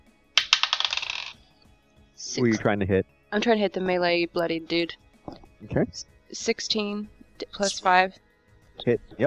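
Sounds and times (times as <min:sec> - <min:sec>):
dice rolling on a table: 0:00.4 - 0:01.4
speech: 0:02.2 - 0:08.2, 0:08.8 - 0:09.2.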